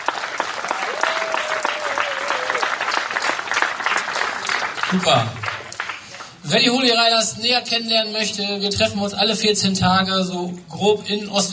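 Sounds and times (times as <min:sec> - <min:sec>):
audience applause: 0:00.0 - 0:06.4
speech: 0:04.9 - 0:05.5, 0:06.5 - 0:11.5.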